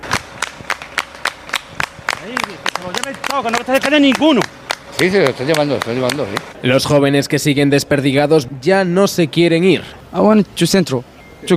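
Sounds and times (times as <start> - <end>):
crowd clapping rhythmically for soldiers: 0.0 - 6.6
crowd voices calling out: 0.8 - 11.5
speech: 2.2 - 11.5.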